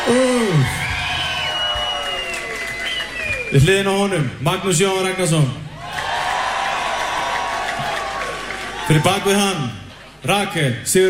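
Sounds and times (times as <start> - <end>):
audience applauding and cheering at a live band concert: 0.0 - 3.8, 5.7 - 9.5
speech: 0.1 - 0.9, 3.5 - 5.6, 8.9 - 11.0.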